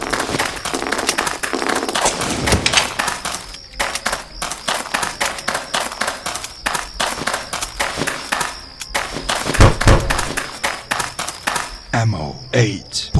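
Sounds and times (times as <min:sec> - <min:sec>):
grenade explosions in a zombie video game: 0:00.0 - 0:11.8
speech: 0:12.6 - 0:13.1.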